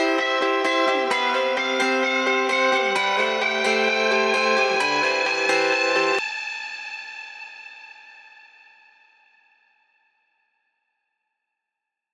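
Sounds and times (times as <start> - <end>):
guitars: 0.0 - 6.2.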